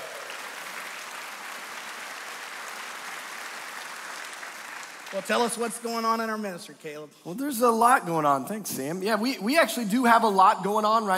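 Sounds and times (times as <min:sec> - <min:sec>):
audience clapping: 0:00.0 - 0:06.4
speech: 0:05.1 - 0:11.1.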